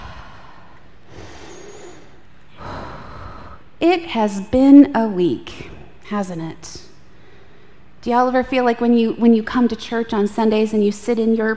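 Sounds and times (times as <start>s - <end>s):
deep breath: 0.0s - 3.8s
speech: 3.8s - 6.9s, 8.0s - 11.5s.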